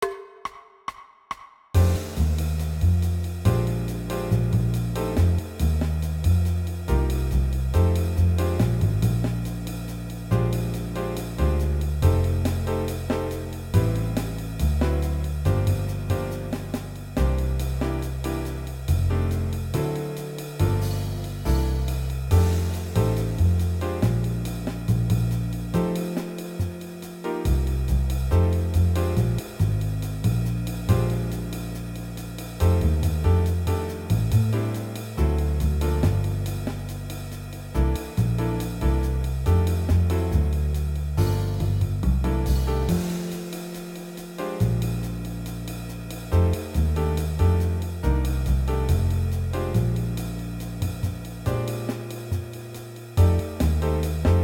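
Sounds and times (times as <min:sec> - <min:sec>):
blues music: 0:01.8 - 0:54.4.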